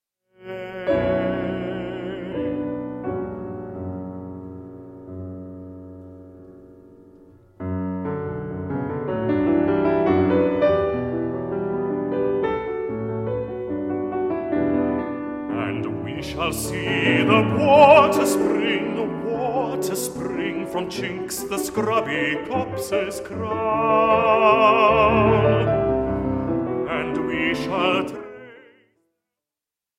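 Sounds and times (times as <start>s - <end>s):
piano: 0.3s - 29.1s
baritone singing: 0.4s - 3.7s, 15.4s - 29.0s.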